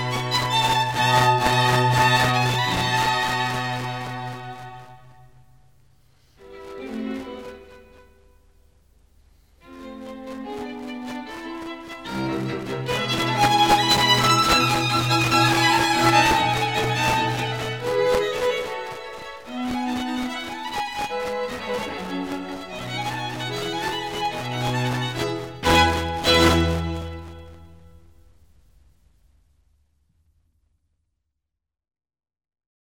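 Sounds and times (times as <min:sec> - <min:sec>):
string quartet playing: 0:00.0 - 0:04.8, 0:06.4 - 0:07.9, 0:09.7 - 0:27.6.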